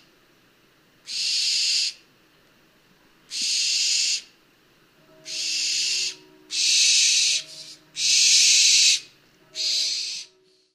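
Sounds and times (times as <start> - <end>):
barn owl call: 1.0 - 2.0, 3.3 - 4.4, 5.1 - 10.7.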